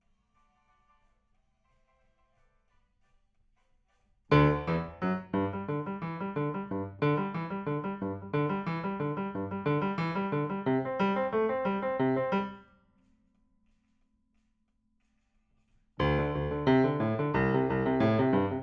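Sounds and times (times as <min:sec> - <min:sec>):
rock and roll piano: 0:04.3 - 0:12.6, 0:16.0 - 0:18.6.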